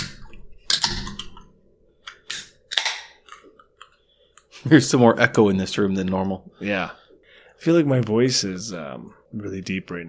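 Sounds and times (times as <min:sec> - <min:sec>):
beer cans or bottles being opened: 0:02.1 - 0:03.4
speech: 0:04.6 - 0:07.0, 0:07.6 - 0:10.0.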